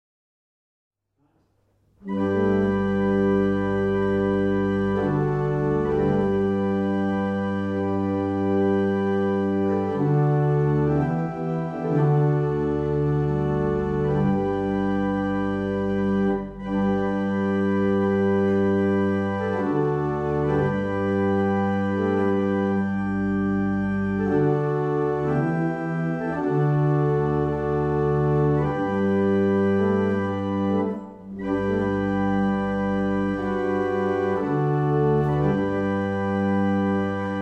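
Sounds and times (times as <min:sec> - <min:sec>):
barrel organs playing a single chant: 0:02.0 - 0:37.3.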